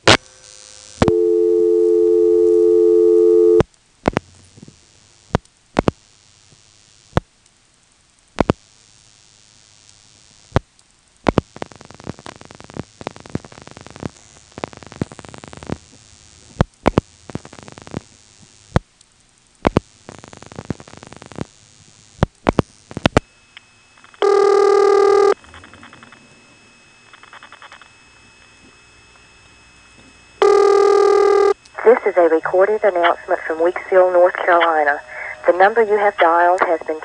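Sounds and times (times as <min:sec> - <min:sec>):
steady tone on a 2600-cycle carrier trunk telephone call: 0:00.0 - 0:03.6, 0:23.3 - 0:37.0
clicks and crackly static on the telephone line: 0:00.0 - 0:37.0
speech: 0:32.2 - 0:37.0.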